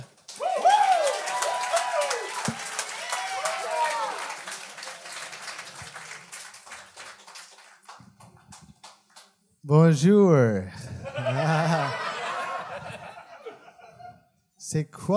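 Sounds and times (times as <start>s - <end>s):
audience applause: 0.0s - 9.3s
audience whoops and cheers: 0.3s - 4.5s
speech: 9.7s - 11.8s, 14.7s - 15.1s
laughter: 10.8s - 14.3s.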